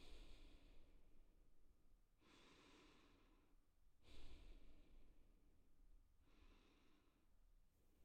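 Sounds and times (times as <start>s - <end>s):
woman breathing delicately: 0.0s - 1.0s, 2.2s - 5.3s, 6.2s - 7.4s.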